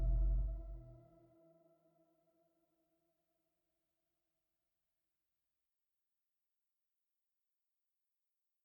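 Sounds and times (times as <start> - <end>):
trailer intro music: 0.0 - 0.9.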